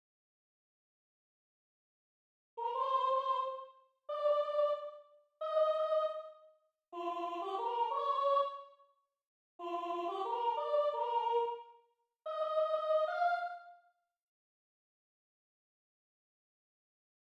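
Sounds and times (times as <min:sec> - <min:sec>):
soprano singing: 0:02.6 - 0:06.3, 0:07.0 - 0:08.7, 0:09.6 - 0:11.6, 0:12.3 - 0:13.7.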